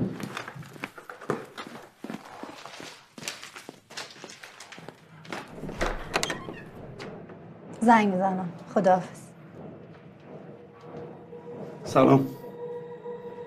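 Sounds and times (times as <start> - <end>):
footsteps in a home: 0.0 - 13.4
clunks and thumps of a door being opened in a home: 5.4 - 7.5
speech: 7.8 - 9.2, 11.9 - 12.4.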